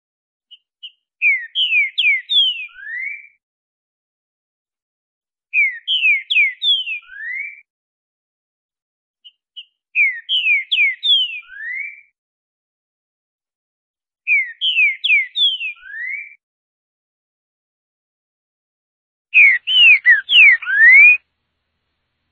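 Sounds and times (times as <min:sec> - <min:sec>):
green-winged saltator singing slurred falling whistles: 0:01.2 - 0:03.4, 0:05.6 - 0:07.6, 0:10.0 - 0:12.1, 0:14.3 - 0:16.4, 0:19.4 - 0:21.2.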